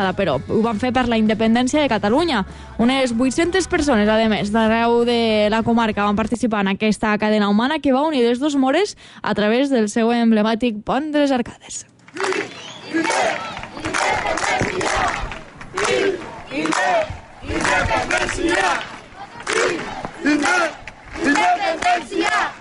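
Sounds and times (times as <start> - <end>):
speech: 0.0 - 14.9, 16.6 - 19.0, 19.6 - 22.5
large crowd chanting independence slogans: 12.1 - 22.5.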